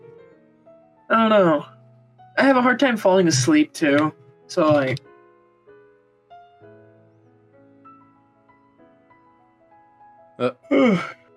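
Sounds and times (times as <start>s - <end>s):
speech: 1.1s - 1.7s, 2.4s - 5.1s, 10.4s - 11.2s
soft sustained tones: 2.4s - 5.0s
person yawning: 10.7s - 11.2s.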